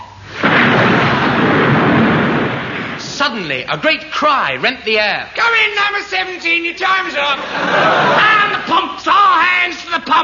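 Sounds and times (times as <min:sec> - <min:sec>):
thunder as a storm bursts: 0:00.0 - 0:03.7
speech: 0:03.3 - 0:10.2
laughter: 0:07.3 - 0:08.7.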